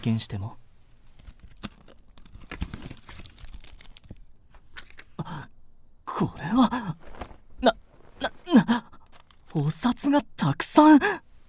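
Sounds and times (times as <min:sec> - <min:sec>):
speech: 0:00.0 - 0:00.6, 0:09.6 - 0:11.2
paper crinkling and tearing as a thick envelope is opened: 0:01.0 - 0:05.1, 0:07.0 - 0:08.4.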